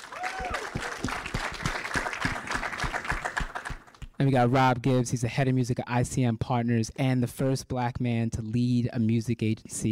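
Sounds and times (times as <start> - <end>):
whoop: 0.0 - 1.1
audience applause for the co-founder of Rolling Loud: 0.0 - 4.2
speech: 4.2 - 9.9.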